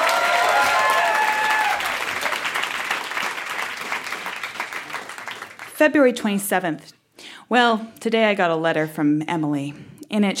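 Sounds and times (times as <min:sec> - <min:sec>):
audience applause welcoming a performer onto a stage: 0:00.0 - 0:05.7
speech: 0:05.8 - 0:10.3.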